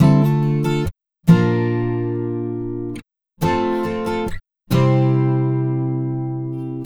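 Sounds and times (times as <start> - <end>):
acoustic pop guitar in D minor: 0.0 - 6.8.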